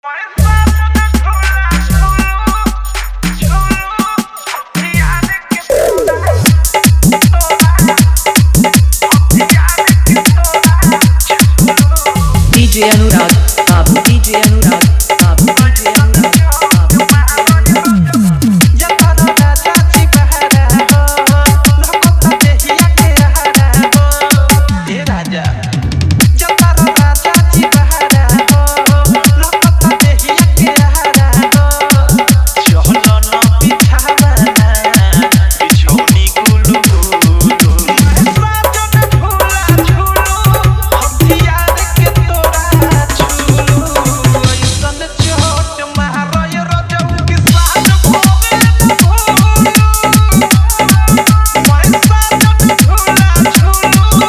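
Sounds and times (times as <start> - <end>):
Bhojpuri dance song with dholak and bass: 0.0 - 54.2.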